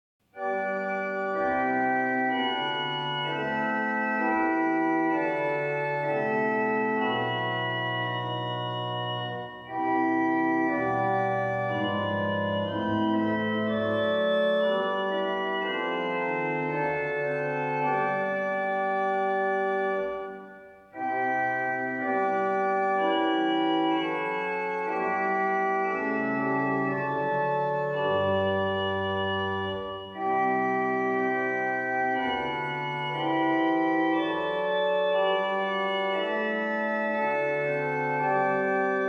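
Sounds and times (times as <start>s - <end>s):
chorale prelude music: 0.3s - 39.0s.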